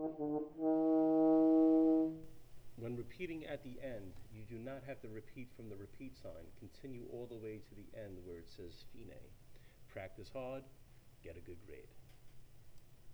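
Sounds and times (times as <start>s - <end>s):
baritone horn solo: 0.0s - 3.1s.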